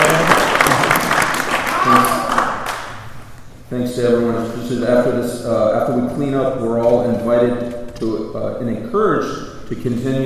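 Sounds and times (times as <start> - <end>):
meeting audience clapping: 0.0 - 3.1
speech: 3.7 - 10.2.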